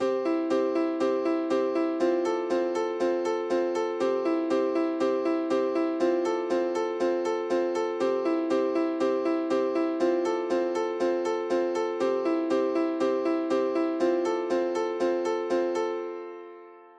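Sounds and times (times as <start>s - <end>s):
piano: 0.0s - 16.9s.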